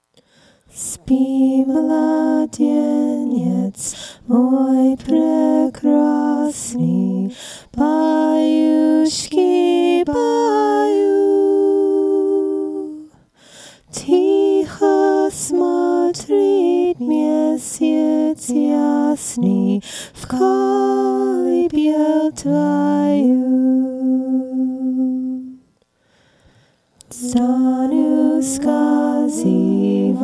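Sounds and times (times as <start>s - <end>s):
Cossack lullaby: 0.2s - 25.8s, 27.0s - 30.2s.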